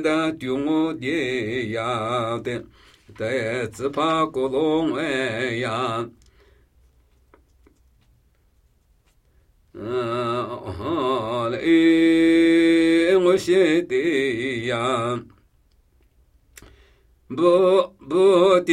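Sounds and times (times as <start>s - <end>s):
Namuyi Tibetan ritual chanting: 0.0s - 6.2s, 9.7s - 15.4s, 17.3s - 18.7s.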